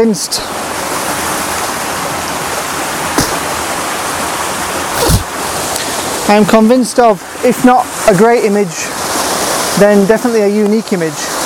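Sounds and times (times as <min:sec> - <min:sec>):
speech: 0:00.0 - 0:00.8, 0:06.3 - 0:08.9, 0:09.8 - 0:11.2
waterfall roar: 0:00.0 - 0:11.4
splashes or bumps: 0:00.9 - 0:06.1.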